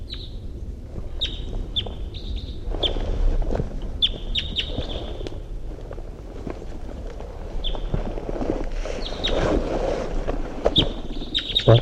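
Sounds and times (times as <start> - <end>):
wild birds chirping: 0.0 - 0.4, 1.0 - 3.2, 3.8 - 5.5, 7.4 - 8.1, 8.8 - 9.6, 10.7 - 11.8
low rumble of wind: 0.0 - 11.8.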